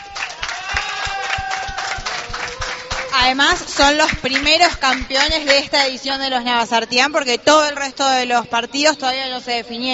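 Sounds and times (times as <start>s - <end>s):
applause: 0.0s - 5.7s
speech: 3.2s - 9.9s.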